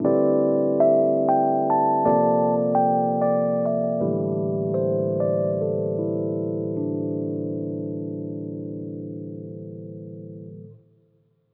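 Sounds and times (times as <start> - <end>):
electric piano: 0.0 - 10.8.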